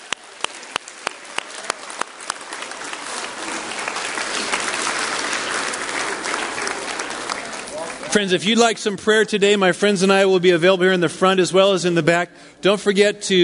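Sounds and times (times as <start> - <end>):
audience applause: 0.0 - 8.7
speech: 8.1 - 13.4.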